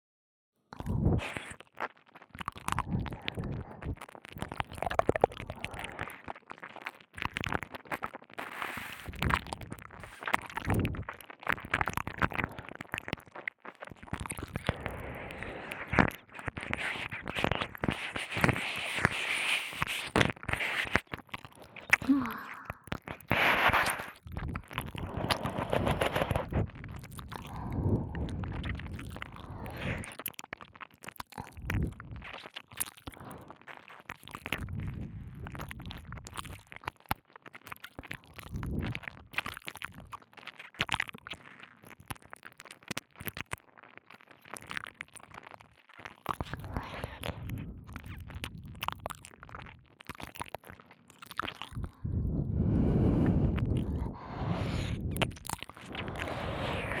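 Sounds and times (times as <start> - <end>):
ear licking sounds: 0.8 - 56.9.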